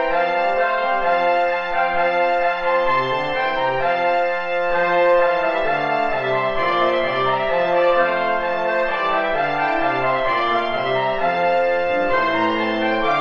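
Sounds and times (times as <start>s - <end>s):
two trombones playing: 0.0s - 13.2s.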